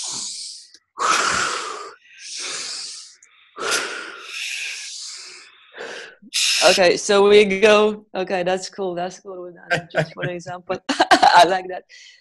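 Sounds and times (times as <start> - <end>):
deep forceful breathing exercise with full inhales and exhales: 0.0 - 6.6
speech: 6.7 - 12.1
laughter: 9.7 - 11.4.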